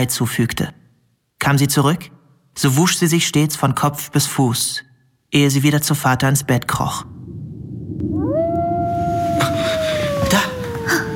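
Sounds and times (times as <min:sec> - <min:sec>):
speech: 0:00.0 - 0:00.8, 0:01.4 - 0:07.2, 0:10.3 - 0:10.5
wolf howling: 0:08.0 - 0:11.1.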